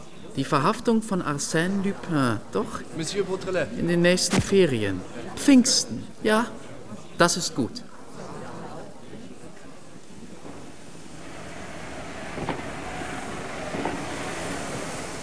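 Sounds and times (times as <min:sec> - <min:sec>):
speech: 0:00.4 - 0:07.9
moving train to Dieppe rumbling: 0:09.4 - 0:15.2
sharp clacks from the rails: 0:09.9 - 0:15.2.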